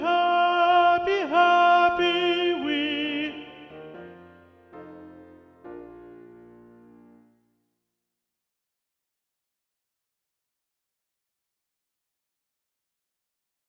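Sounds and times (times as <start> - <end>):
alto voice singing: 0.0 - 4.4.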